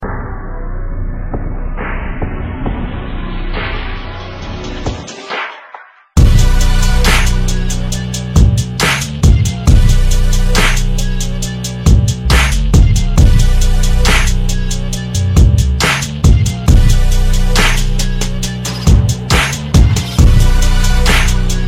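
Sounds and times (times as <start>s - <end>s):
instrumental music: 6.2s - 21.6s.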